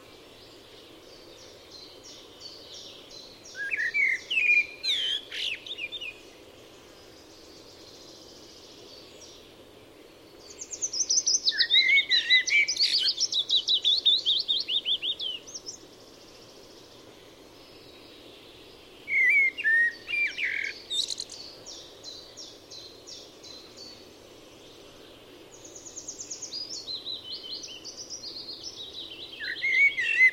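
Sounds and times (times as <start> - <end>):
Eurasian blackbird singing: 2.8 - 6.2, 10.4 - 15.8, 19.0 - 24.0, 25.7 - 30.3.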